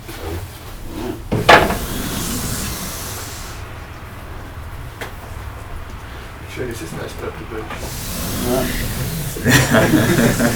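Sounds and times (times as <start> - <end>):
steady low noise: 0.0 - 10.5
wooden window being opened: 0.0 - 10.5
hissing rush of air: 0.7 - 10.5
laughter: 1.5 - 10.5
speech: 6.6 - 10.5.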